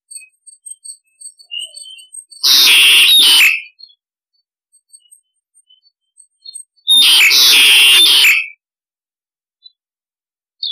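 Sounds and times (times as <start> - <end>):
starling harsh rasping calls: 1.0 - 3.8, 6.8 - 8.6.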